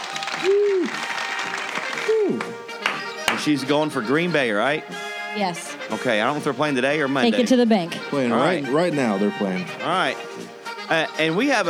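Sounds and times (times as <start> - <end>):
applause: 0.0 - 2.6
speech: 0.1 - 1.1, 3.4 - 11.6.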